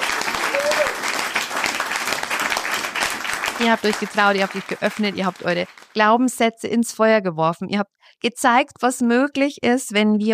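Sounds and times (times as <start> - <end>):
applause sound effect: 0.0 - 6.1
speech: 3.6 - 10.3.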